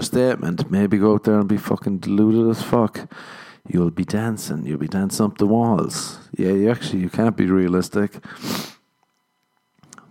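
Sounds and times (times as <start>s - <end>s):
speech: 0.0s - 8.8s
person sniffing: 8.2s - 8.8s.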